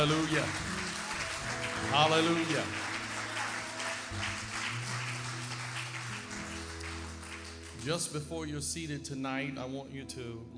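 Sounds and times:
speech: 0.0s - 0.7s, 1.8s - 2.8s, 4.1s - 4.4s, 7.8s - 10.5s
audience clapping: 0.0s - 8.2s
sustained low keyboard chords: 0.0s - 10.5s.

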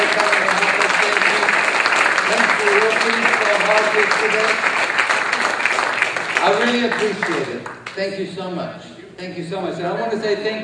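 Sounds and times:
audience applause: 0.0s - 8.0s
speech: 3.0s - 4.7s, 6.4s - 10.6s.

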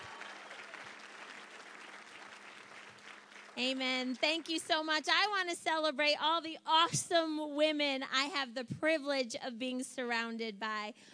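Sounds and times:
audience hand clapping: 0.0s - 5.3s
speech: 3.6s - 11.1s.

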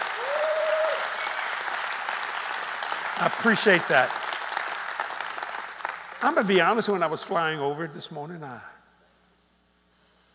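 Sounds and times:
crowd applauding: 0.0s - 7.2s
person whooping: 0.1s - 1.3s
speech: 3.2s - 4.2s, 6.2s - 8.8s.

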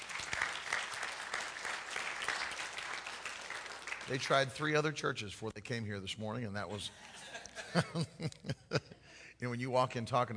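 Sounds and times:
church congregation applauding to welcome guests: 0.0s - 4.8s
speech: 4.1s - 7.1s, 7.7s - 10.3s
laughter: 6.7s - 9.0s.

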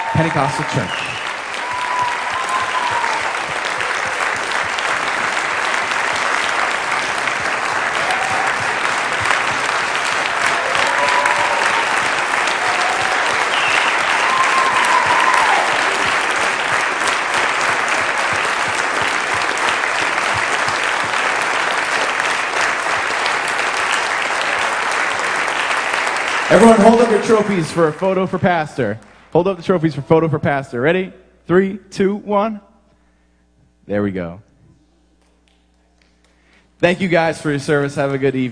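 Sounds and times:
audience applause welcoming volunteers at Charleston Pentecostal Church: 0.0s - 28.9s
speech: 0.1s - 1.1s, 26.6s - 32.7s, 33.9s - 34.5s, 36.8s - 38.4s.

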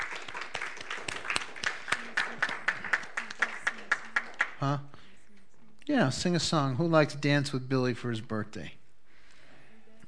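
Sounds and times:
audience applause: 0.0s - 4.8s
speech: 4.6s - 4.9s, 5.9s - 8.8s.

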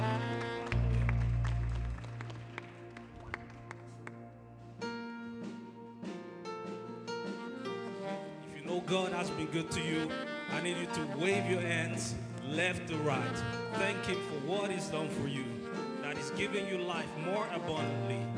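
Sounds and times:
audience clapping: 0.0s - 4.4s
heavy low bass swell: 0.0s - 4.8s
sustained keyboard chords: 0.0s - 18.3s
speech: 8.8s - 15.6s, 16.4s - 18.3s.

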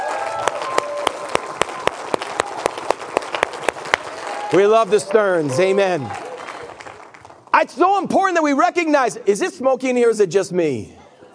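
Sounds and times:
audience clapping hands: 0.0s - 7.6s
speech: 4.5s - 6.2s, 7.6s - 11.0s.

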